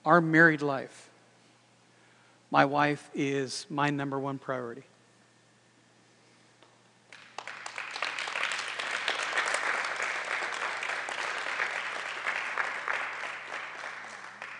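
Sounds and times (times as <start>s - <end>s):
speech: 0.0s - 1.1s, 2.5s - 4.9s
audience clapping: 7.1s - 14.5s.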